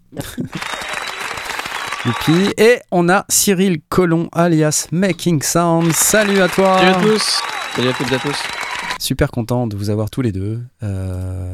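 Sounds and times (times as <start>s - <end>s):
speech: 0.1s - 0.6s, 2.0s - 11.5s
crowd clapping: 0.2s - 2.6s, 5.8s - 9.0s.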